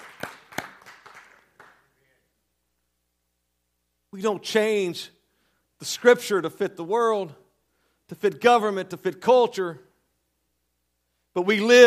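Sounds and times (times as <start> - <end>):
audience hand claps: 0.0 - 2.1
speech: 4.1 - 5.2, 5.8 - 7.4, 8.1 - 9.9, 11.4 - 11.8.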